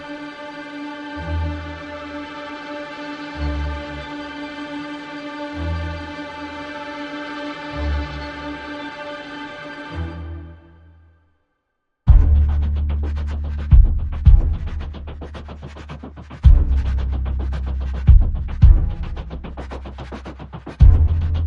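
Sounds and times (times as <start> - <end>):
strings: 0.0 - 11.1, 12.1 - 21.4
bass: 1.2 - 2.2, 3.4 - 4.1, 5.5 - 6.4, 12.1 - 21.4
drums: 12.1 - 21.4.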